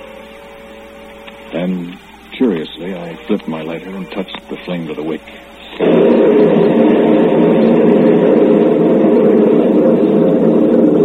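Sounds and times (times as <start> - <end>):
speech: 1.5 - 6.8
thunder: 5.8 - 11.0.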